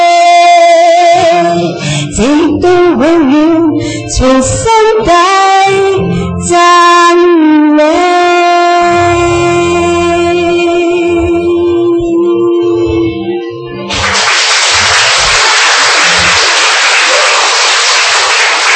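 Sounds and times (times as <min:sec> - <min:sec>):
song with sustained sung tones and a steady bass line: 0:00.0 - 0:17.3
speech: 0:02.2 - 0:08.0
applause: 0:13.9 - 0:18.7.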